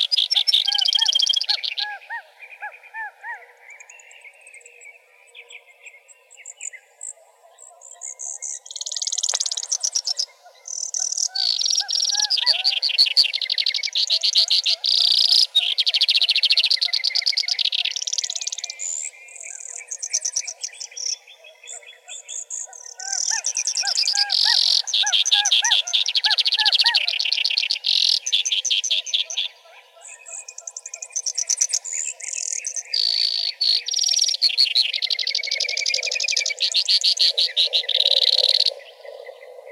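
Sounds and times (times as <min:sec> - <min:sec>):
Brewer's sparrow calling, an emberizid: 0:00.0 - 0:04.3, 0:07.8 - 0:39.6.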